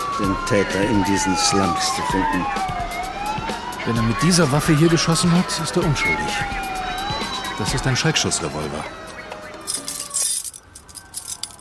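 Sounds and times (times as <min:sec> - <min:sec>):
speech: 0:00.2 - 0:03.0, 0:03.8 - 0:06.7, 0:07.6 - 0:09.1
key from a key ring unlocking a rusty iron gate: 0:09.6 - 0:11.5.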